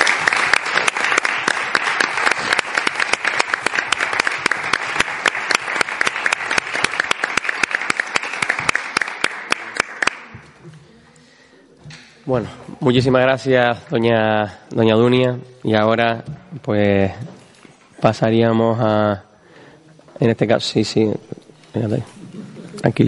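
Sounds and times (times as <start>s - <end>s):
applause: 0.0s - 10.5s
speech: 12.3s - 17.3s, 18.0s - 19.3s, 20.2s - 21.2s, 21.8s - 22.2s, 22.8s - 23.0s.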